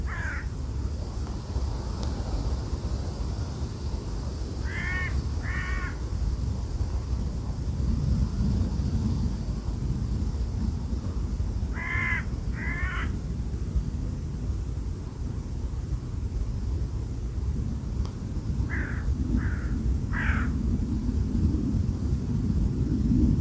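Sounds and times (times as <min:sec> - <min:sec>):
bird cawing: 0:00.0 - 0:00.5, 0:04.6 - 0:06.0, 0:11.7 - 0:13.2, 0:18.7 - 0:20.5
heavy wind roar: 0:00.0 - 0:23.4.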